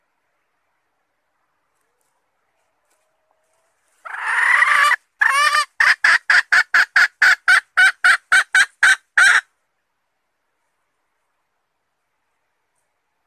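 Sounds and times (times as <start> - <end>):
red junglefowl hen calling and clucking: 2.6 - 9.4.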